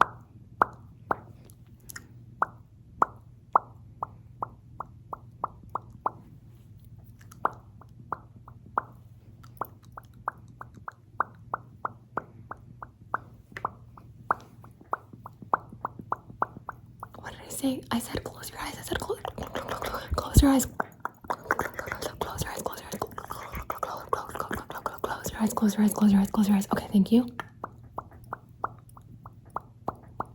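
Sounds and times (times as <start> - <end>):
ASMR soft bubble pops: 0.0 - 30.3
low steady hum: 0.0 - 30.3
speech: 17.6 - 19.4, 20.4 - 20.8, 25.6 - 27.4.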